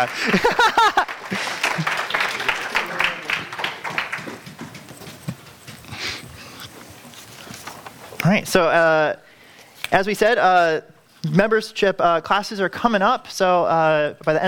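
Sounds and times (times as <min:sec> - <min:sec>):
speech: 0:00.0 - 0:00.8, 0:08.3 - 0:09.2, 0:09.9 - 0:14.4
clapping: 0:00.0 - 0:06.0
laughter: 0:00.0 - 0:07.1.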